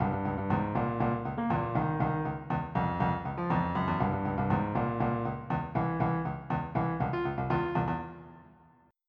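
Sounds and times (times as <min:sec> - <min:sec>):
funk music: 0:00.0 - 0:08.0.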